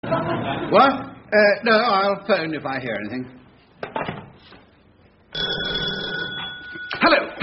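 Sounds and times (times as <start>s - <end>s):
speech: 0.1s - 4.1s, 6.9s - 7.4s
front doorbell ringing: 5.4s - 7.2s.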